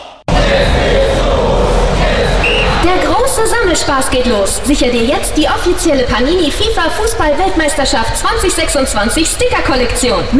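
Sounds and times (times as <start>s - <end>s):
stadium crowd cheering after goal: 0.0s - 5.4s
speech: 3.7s - 10.3s.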